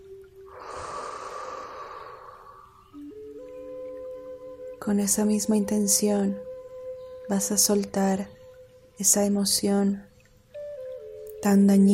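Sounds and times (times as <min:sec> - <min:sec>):
quiet sustained musical tone: 0:00.0 - 0:11.9
long deep exhale after an inhale: 0:00.5 - 0:03.0
speech: 0:04.8 - 0:06.5, 0:07.3 - 0:08.4, 0:09.0 - 0:10.1, 0:11.4 - 0:11.9.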